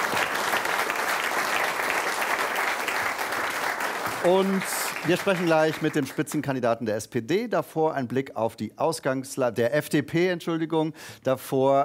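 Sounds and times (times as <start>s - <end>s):
audience applause: 0.0s - 6.3s
speech: 4.2s - 11.8s.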